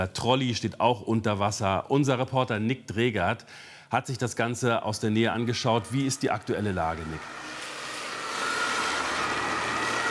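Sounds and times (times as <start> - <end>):
speech: 0.0 - 7.5
emergency vehicles driving past in Wittenburg: 5.9 - 10.0.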